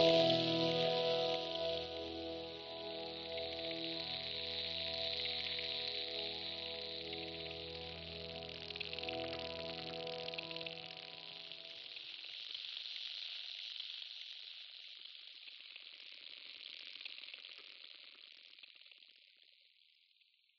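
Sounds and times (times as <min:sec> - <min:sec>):
sunrise ambient music: 0:00.0 - 0:11.7.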